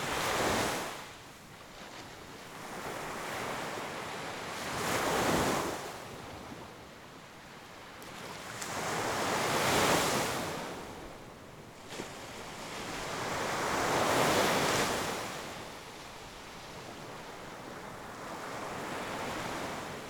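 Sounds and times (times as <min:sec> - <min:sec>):
gentle waves on beach: 0:00.0 - 0:20.0.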